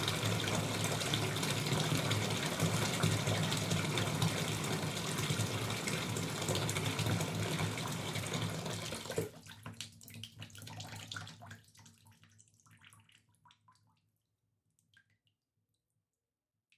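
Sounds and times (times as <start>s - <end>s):
bath water running into a bathtub: 0.0s - 13.3s.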